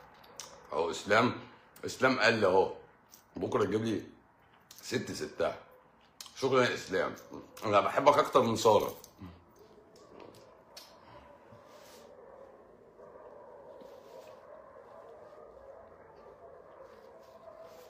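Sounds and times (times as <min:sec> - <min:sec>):
speech: 0:00.7 - 0:02.8, 0:03.4 - 0:04.2, 0:04.8 - 0:05.7, 0:06.4 - 0:09.4
street dogs barking: 0:06.9 - 0:08.8, 0:09.5 - 0:17.8.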